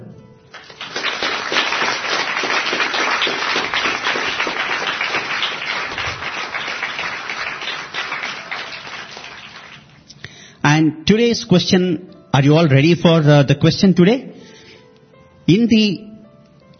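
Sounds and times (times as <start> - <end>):
audience applause: 0.6 - 10.0
speech: 11.1 - 14.3, 15.5 - 16.1.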